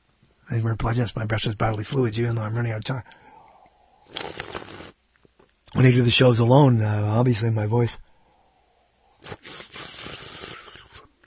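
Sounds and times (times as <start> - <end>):
speech: 0.5 - 3.2, 5.8 - 8.1
radio host slurping coffee on air: 4.0 - 5.0, 9.1 - 11.2.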